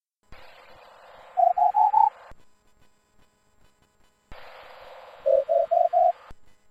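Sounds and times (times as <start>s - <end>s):
battery charger beeps: 1.3s - 2.1s, 5.3s - 6.2s.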